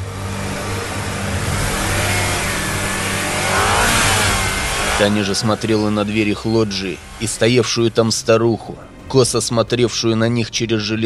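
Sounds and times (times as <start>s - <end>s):
car engine started and revving: 0.0s - 8.3s
speech: 5.0s - 11.0s.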